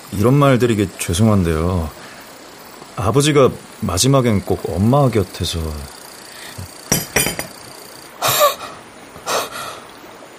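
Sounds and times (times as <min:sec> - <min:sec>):
speech: 0:00.1 - 0:02.0, 0:03.0 - 0:06.0
coffee cup set down with a clink: 0:06.9 - 0:07.6.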